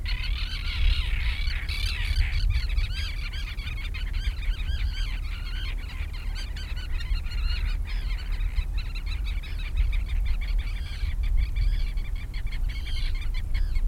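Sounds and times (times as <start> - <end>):
gulls near the sea squealing and squawking: 0.0 - 13.8.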